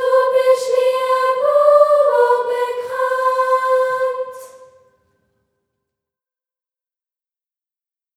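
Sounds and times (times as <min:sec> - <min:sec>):
soprano voice: 0:00.0 - 0:04.6.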